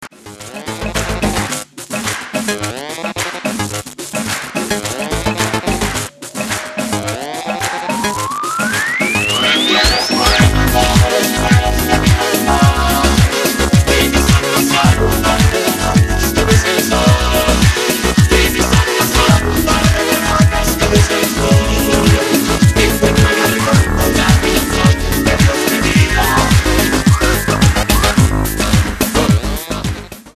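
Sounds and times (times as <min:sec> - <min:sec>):
electronic soca music: 0:00.2 - 0:30.3.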